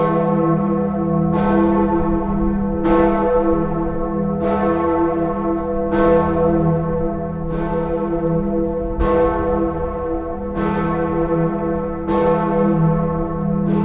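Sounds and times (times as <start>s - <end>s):
church bell ringing in Dresden Kreuzkirche: 0.0s - 13.8s.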